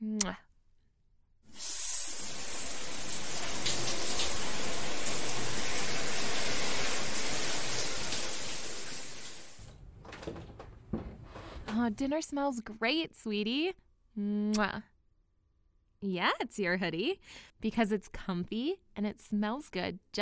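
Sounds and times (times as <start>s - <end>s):
speech: 0.2s - 0.5s, 11.8s - 14.9s, 16.0s - 20.2s
shower water running: 1.5s - 10.4s.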